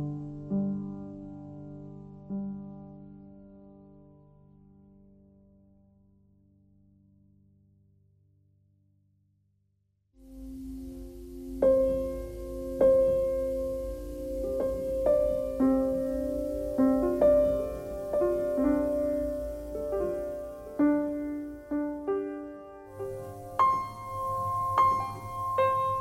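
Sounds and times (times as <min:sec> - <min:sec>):
piano noise: 0:10.2 - 0:25.9.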